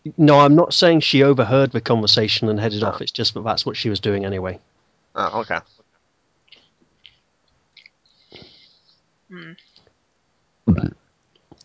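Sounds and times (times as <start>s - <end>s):
speech: 0.0s - 5.8s, 9.3s - 9.6s
person burping: 10.7s - 11.0s.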